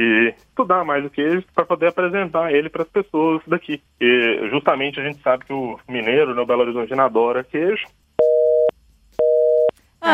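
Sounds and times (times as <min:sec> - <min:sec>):
speech: 0:00.0 - 0:08.0
busy signal after a dropped phone call: 0:08.2 - 0:09.7.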